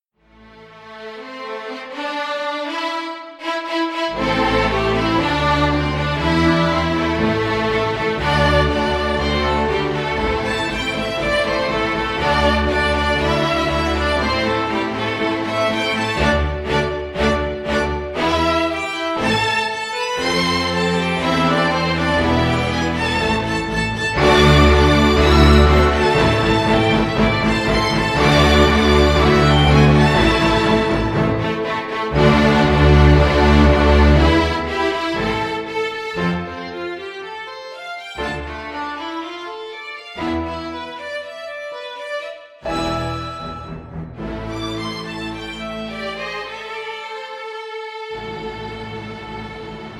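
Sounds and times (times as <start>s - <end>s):
solo violins: 0.2s - 49.9s.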